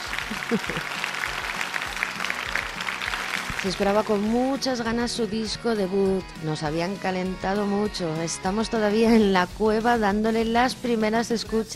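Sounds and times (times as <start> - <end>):
laughter: 0.0 - 1.1
applause: 0.0 - 4.6
speech: 0.3 - 1.1, 3.6 - 11.7.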